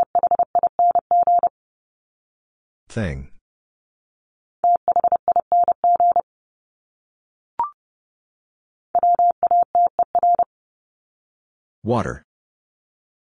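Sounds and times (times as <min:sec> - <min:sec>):
Morse code tones at 30 wpm: 0:00.0 - 0:01.5, 0:04.6 - 0:06.2, 0:09.0 - 0:10.5
speech: 0:02.9 - 0:03.3, 0:11.8 - 0:12.3.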